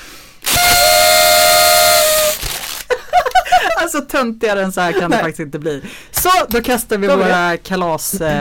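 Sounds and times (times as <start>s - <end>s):
party horns blowing: 0.4s - 2.8s
laughter: 2.9s - 3.9s, 4.8s - 5.9s
speech: 3.9s - 8.3s.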